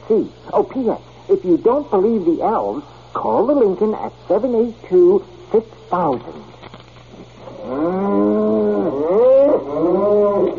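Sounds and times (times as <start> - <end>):
speech: 0.1 - 6.5
cow mooing: 7.6 - 10.5.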